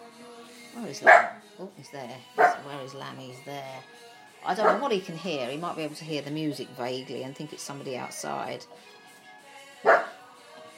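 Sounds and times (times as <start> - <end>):
speech: 0.8 - 9.0
dog barking: 1.0 - 1.4, 2.4 - 2.7, 4.6 - 4.9, 9.8 - 10.2.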